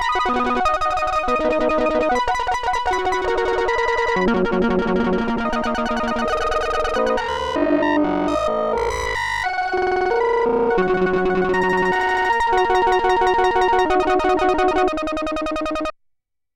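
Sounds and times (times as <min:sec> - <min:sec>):
Korg synthesizer arpeggio: 0:00.0 - 0:15.9.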